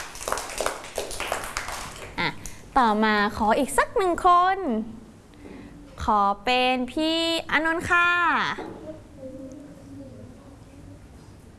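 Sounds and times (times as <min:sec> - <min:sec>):
light scattered clapping by a small group: 0:00.0 - 0:02.6
speech: 0:02.2 - 0:05.0, 0:06.0 - 0:08.7.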